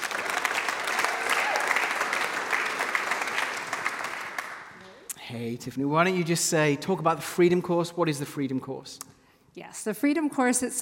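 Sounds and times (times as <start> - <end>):
crowd clapping: 0.0 - 5.0
speech: 5.3 - 10.8.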